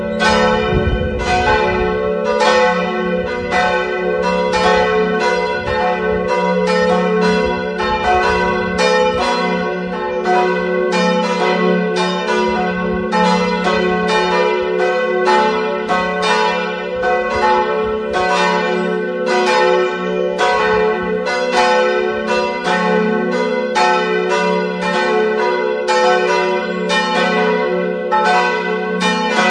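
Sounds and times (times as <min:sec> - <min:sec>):
multi-voice bell peal on F sharp, A and B: 0:00.0 - 0:29.4.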